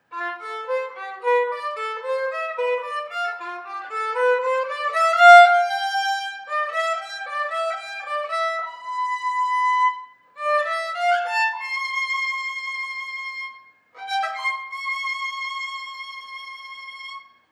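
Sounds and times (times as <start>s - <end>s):
soaring violin: 0.0s - 17.5s.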